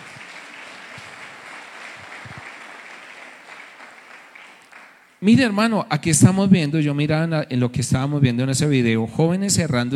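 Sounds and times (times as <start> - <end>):
audience applause: 0.0 - 5.2
speech: 5.2 - 9.9.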